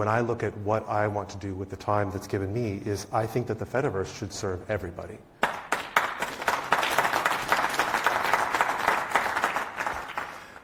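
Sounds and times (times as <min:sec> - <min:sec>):
speech: 0:00.0 - 0:05.3
audience applause and clapping: 0:05.4 - 0:10.6.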